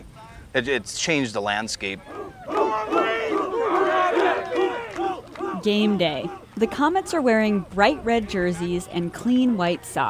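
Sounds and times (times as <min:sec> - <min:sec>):
speech: 0:00.5 - 0:03.0, 0:05.6 - 0:10.0
crowd of girls screaming at a high school football game: 0:02.0 - 0:09.1.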